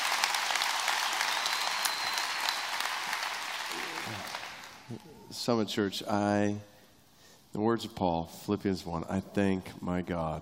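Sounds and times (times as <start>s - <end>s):
church audience applause welcoming a speaker: 0.0s - 5.0s
speech: 4.9s - 6.7s, 7.6s - 10.4s.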